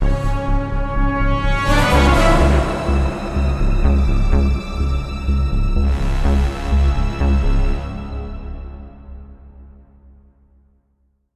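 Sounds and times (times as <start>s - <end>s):
tension music sting: 0.5s - 8.9s.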